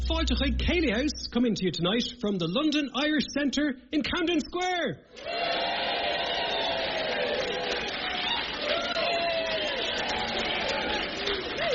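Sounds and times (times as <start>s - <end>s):
speech: 0.1s - 5.5s
buzz of a full house crowd: 5.2s - 11.7s.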